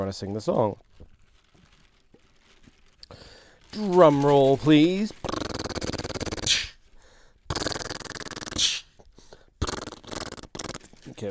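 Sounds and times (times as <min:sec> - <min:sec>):
speech: 0:00.0 - 0:00.9, 0:03.7 - 0:05.2
Long and McQuaid plastic bag rustling as a paper slip is drawn: 0:00.0 - 0:08.2, 0:10.8 - 0:11.2.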